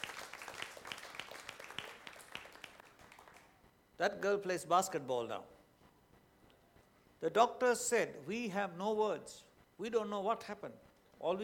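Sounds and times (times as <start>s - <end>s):
audience clapping: 0.0s - 3.6s
speech: 4.0s - 5.6s, 7.2s - 11.4s.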